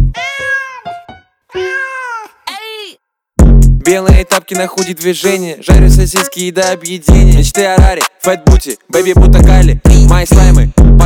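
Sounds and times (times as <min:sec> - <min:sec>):
cat meowing: 0:00.1 - 0:02.4
cat chirps: 0:00.2 - 0:02.7
speech: 0:03.9 - 0:11.0.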